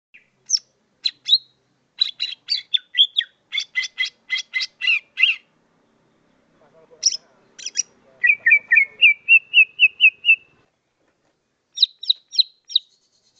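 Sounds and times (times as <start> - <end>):
bird chirping and trilling: 0.2 - 10.6, 11.7 - 13.3.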